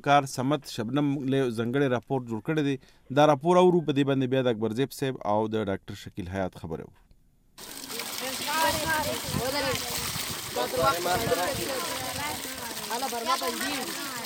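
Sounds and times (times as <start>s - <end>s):
speech: 0.0s - 7.0s, 7.6s - 7.9s, 10.6s - 12.0s, 13.0s - 14.2s
children chattering at a water borehole pump north of Pishin: 7.9s - 14.2s.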